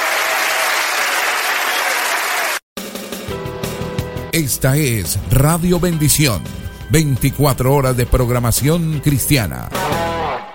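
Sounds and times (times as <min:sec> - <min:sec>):
audience applause: 0:00.0 - 0:02.6
speech: 0:04.4 - 0:10.0.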